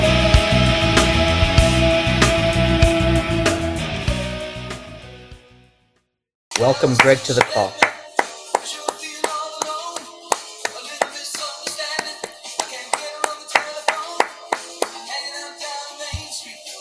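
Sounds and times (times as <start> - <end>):
music: 0.0 - 16.8
off-beat hand clapping along to music: 6.5 - 15.1
speech: 6.6 - 7.9.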